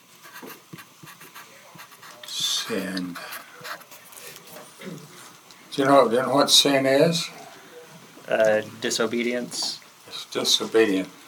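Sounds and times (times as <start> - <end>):
scratchy writing strokes during a Bible lesson: 0.2 - 4.5
speech: 2.7 - 3.3, 5.8 - 7.4, 8.3 - 11.2.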